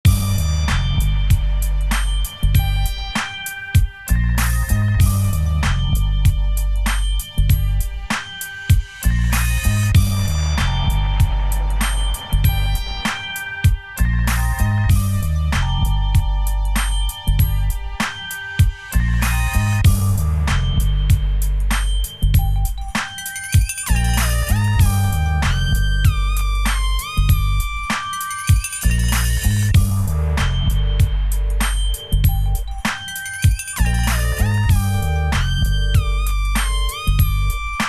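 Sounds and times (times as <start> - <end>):
music: 0.0 - 37.8.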